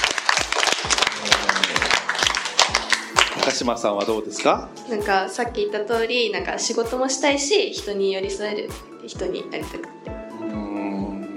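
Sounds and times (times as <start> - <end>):
audience clapping: 0.0 - 4.3
speech: 3.5 - 10.0.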